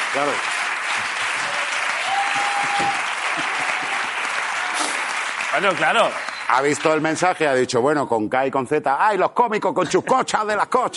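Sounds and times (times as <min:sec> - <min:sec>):
audience applause: 0:00.0 - 0:07.3
speech: 0:00.1 - 0:01.1, 0:05.5 - 0:10.9.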